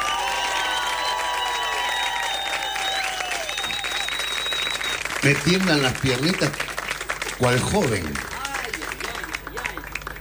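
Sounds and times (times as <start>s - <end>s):
audience applause: 0.0s - 10.1s
crowd cheering: 0.0s - 10.1s
whistling: 0.2s - 5.1s
speech: 5.2s - 6.7s, 7.4s - 8.3s.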